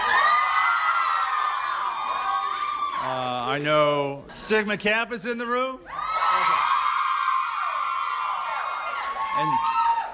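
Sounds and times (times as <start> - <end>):
audience cheering: 0.0 - 3.5, 5.9 - 10.1
speech: 3.6 - 6.0.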